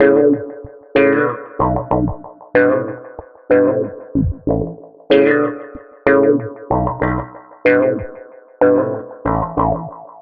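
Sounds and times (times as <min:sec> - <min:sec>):
filtered funky electric bass: 0:01.2 - 0:04.8, 0:06.1 - 0:10.0.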